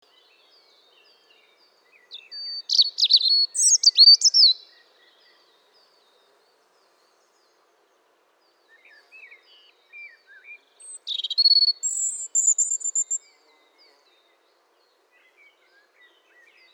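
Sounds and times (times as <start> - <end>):
European robin singing: 2.1 - 4.8, 10.8 - 13.3.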